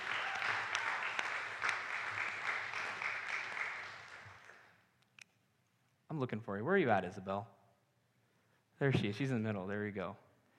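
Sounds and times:
audience clapping: 0.0 - 4.8
speech: 6.2 - 7.6, 8.8 - 10.2.

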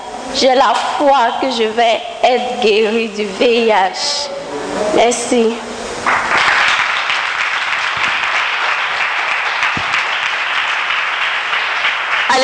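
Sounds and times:
speech: 0.4 - 6.2
church congregation applauding after a testimony of healing: 6.0 - 12.4.

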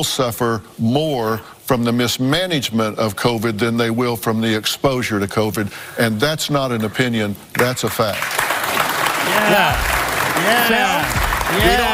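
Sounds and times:
speech: 0.0 - 11.9
studio audience applause on a daytime talk show: 7.6 - 11.9.

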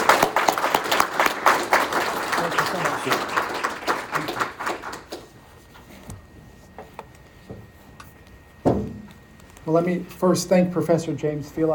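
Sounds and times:
audience applause welcoming a professor before a history lecture: 0.0 - 5.3
speech: 9.7 - 11.7.

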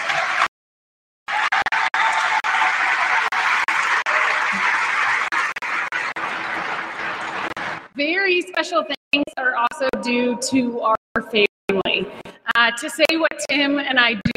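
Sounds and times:
audience round of applause: 0.0 - 0.5, 1.3 - 8.0
speech: 8.0 - 14.3.

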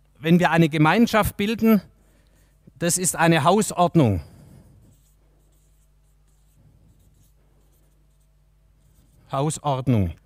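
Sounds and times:
speech: 0.2 - 1.9, 2.8 - 4.3, 9.3 - 10.2
scratching strokes writing on a board: 4.6 - 9.3.

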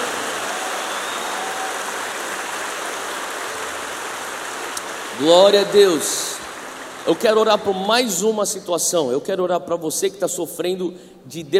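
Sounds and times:
audience applause: 0.0 - 8.2
speech: 5.2 - 6.4, 7.0 - 11.5.

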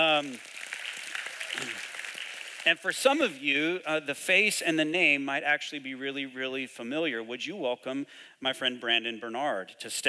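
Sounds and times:
speech: 0.0 - 0.6, 2.6 - 10.0
audience clapping: 0.0 - 3.2.

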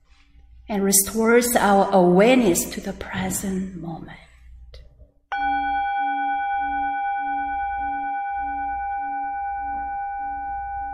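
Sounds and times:
speech: 0.7 - 4.3
meditation bell ringing: 5.3 - 10.9.

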